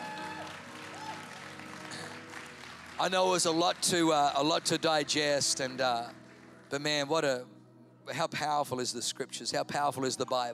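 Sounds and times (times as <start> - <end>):
church congregation clapping as a clap offering: 0.0 - 6.8
speech: 3.0 - 10.5.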